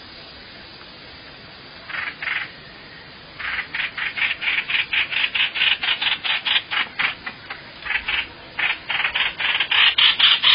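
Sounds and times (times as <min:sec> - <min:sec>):
Hoành hoạch bird rasping calls: 0:03.4 - 0:10.5.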